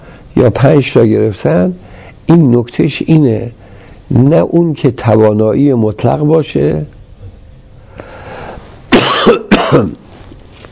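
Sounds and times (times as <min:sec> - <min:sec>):
speech: 0:00.4 - 0:07.0, 0:09.2 - 0:10.0
person coughing after water went down the throat: 0:08.9 - 0:10.0.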